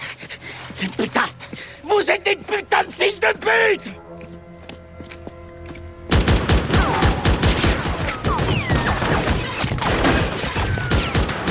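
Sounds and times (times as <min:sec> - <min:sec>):
men talking: 0:00.7 - 0:04.0
gunfire aimed at a van: 0:06.1 - 0:11.4.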